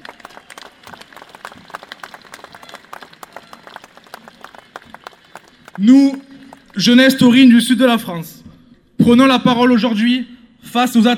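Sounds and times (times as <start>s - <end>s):
audience applause: 0.0s - 7.4s
speech: 5.8s - 8.4s, 9.0s - 11.1s.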